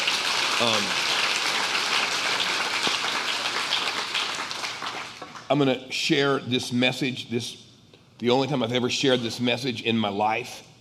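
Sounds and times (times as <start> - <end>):
audience clapping: 0.0 - 5.6
speech: 0.6 - 1.1, 5.5 - 7.6, 8.2 - 10.7.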